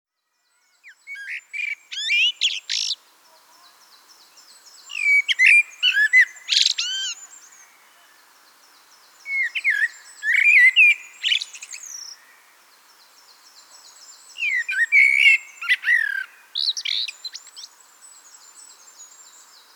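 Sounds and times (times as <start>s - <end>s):
Eurasian blackbird singing: 0.5s - 3.0s, 3.6s - 8.2s, 9.2s - 12.4s, 13.5s - 17.7s.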